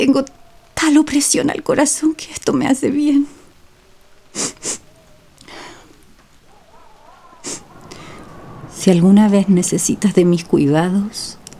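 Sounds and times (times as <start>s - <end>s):
speech: 0.0s - 3.4s, 4.3s - 4.8s, 8.8s - 11.4s
woman crying and sniffling: 4.4s - 5.9s.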